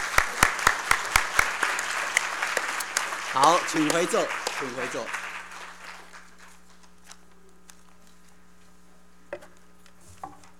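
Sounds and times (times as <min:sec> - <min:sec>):
church congregation applauding to welcome people: 0:00.0 - 0:06.7
speech: 0:03.4 - 0:05.2.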